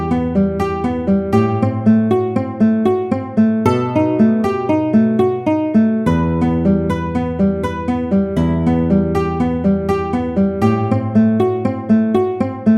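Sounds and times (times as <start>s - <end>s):
guitar study in E minor: 0.0s - 12.7s.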